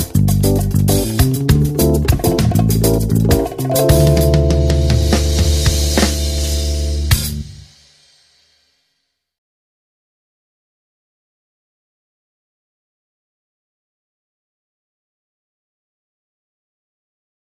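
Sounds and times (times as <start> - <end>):
backing track: 0.0 - 7.7.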